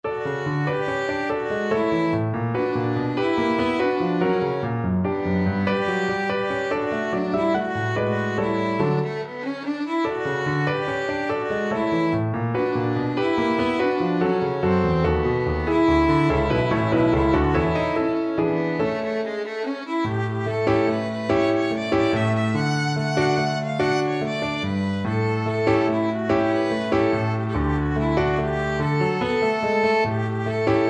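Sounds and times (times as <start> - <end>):
violin: 0.0 - 30.8.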